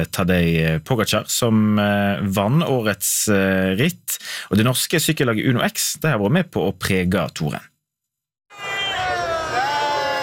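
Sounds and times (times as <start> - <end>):
speech: 0.0 - 7.7
crowd cheering for Uno X cyclists at the Arc de Triomphe in Paris: 8.5 - 10.2.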